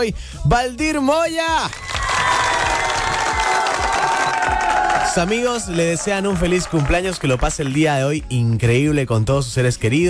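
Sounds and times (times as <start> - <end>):
speech: 0.0 - 2.4, 5.1 - 10.0
crowd applauding: 1.7 - 8.2.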